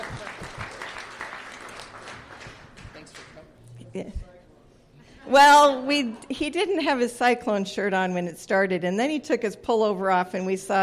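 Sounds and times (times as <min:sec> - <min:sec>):
audience applause: 0:00.0 - 0:03.3
speech: 0:03.9 - 0:04.3, 0:05.2 - 0:10.8.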